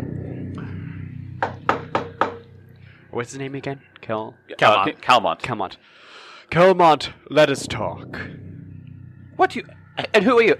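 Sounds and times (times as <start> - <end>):
knocking on a door: 1.4 - 2.4
speech: 3.2 - 8.4, 9.4 - 10.5.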